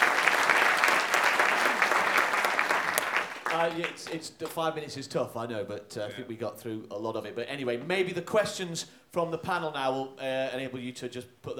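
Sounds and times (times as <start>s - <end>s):
audience applause for a pitch: 0.0s - 4.2s
speech: 3.6s - 11.5s.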